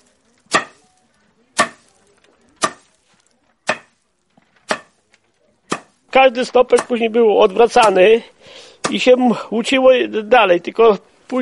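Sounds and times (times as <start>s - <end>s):
threshing with a wooden flail: 0.0s - 8.1s
speech: 6.2s - 11.4s.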